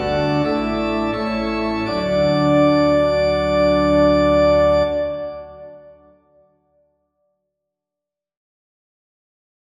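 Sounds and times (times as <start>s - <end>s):
organ: 0.0s - 6.4s.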